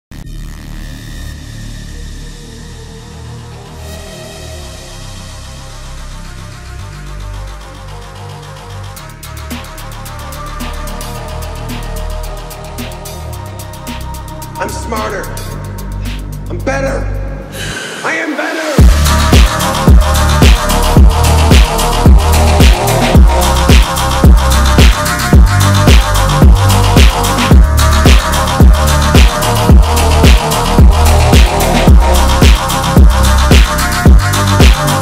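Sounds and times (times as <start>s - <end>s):
phonk music: 4.6s - 35.0s.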